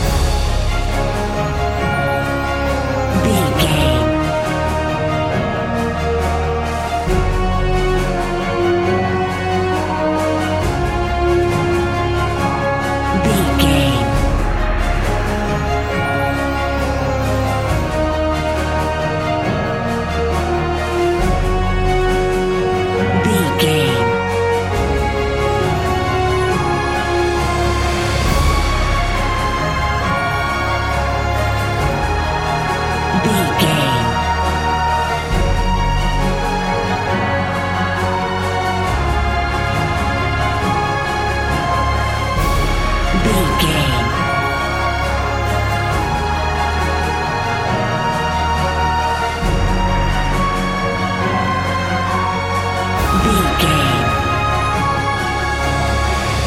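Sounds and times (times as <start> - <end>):
epic emotional music: 0.0 - 56.4.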